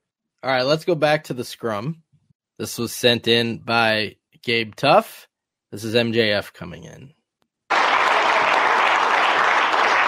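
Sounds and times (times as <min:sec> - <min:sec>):
speech: 0:00.4 - 0:02.0, 0:02.6 - 0:07.2
press room clapping: 0:07.7 - 0:10.0.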